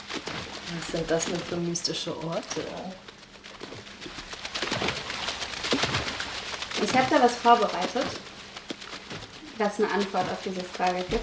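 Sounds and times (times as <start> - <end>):
water splashing: 0.0 - 11.2
speech: 0.7 - 3.1, 6.9 - 8.3, 9.6 - 11.2.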